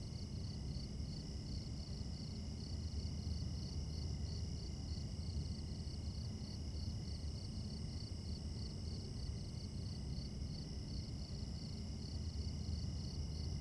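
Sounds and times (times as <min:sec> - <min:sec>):
crickets chirping at night in a suburb: 0:00.1 - 0:13.5.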